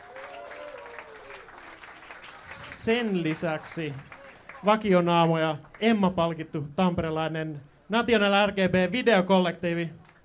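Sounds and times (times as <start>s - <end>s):
jazz club audience applauding a jazz collective: 0.0s - 6.0s
speech: 2.8s - 10.0s.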